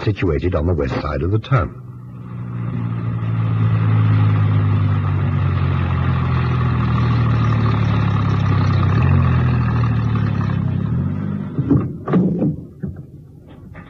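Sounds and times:
speech: 0:00.0 - 0:01.8
van engine droning while driving: 0:00.0 - 0:13.8
short clunks and knocks: 0:11.5 - 0:13.8.

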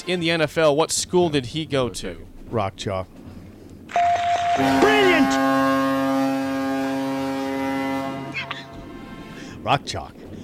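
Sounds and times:
speech: 0:00.0 - 0:03.3, 0:04.6 - 0:05.6, 0:09.6 - 0:10.2
foghorn blast: 0:03.9 - 0:09.6.

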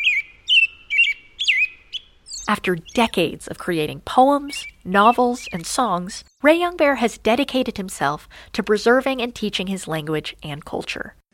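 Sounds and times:
American Robin song: 0:00.0 - 0:03.4, 0:04.0 - 0:06.5
speech: 0:02.5 - 0:11.2.

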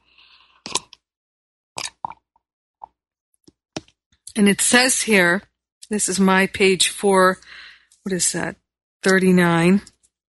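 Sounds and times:
person sipping mate tea: 0:00.1 - 0:01.1
speech: 0:04.4 - 0:09.9.

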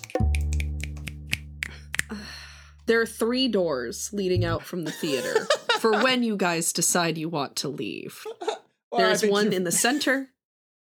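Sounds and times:
finger snaps: 0:00.0 - 0:02.2
speech: 0:02.1 - 0:08.4, 0:09.0 - 0:10.3
laughter: 0:04.8 - 0:06.2.

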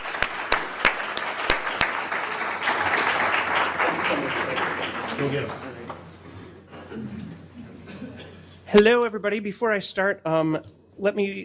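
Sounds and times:
audience applause welcoming a speaker: 0:00.0 - 0:06.0
speech: 0:05.2 - 0:05.7, 0:08.7 - 0:11.4.

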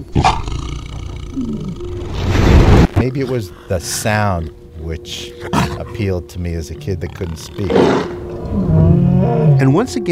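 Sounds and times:
speech: 0:00.0 - 0:00.5, 0:03.0 - 0:08.7, 0:09.3 - 0:10.0
big cats roaring together: 0:00.0 - 0:09.9.

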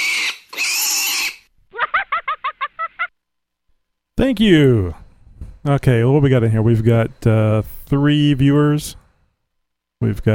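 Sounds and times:
pig oinking: 0:00.0 - 0:01.4
pig squealing: 0:00.0 - 0:02.0
laughter: 0:01.7 - 0:03.2
speech: 0:04.2 - 0:05.0, 0:05.6 - 0:09.0, 0:10.0 - 0:10.3.

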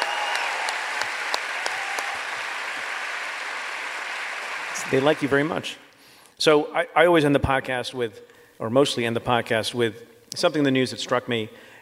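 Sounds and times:
audience applause: 0:00.0 - 0:05.8
speech: 0:04.8 - 0:11.7.

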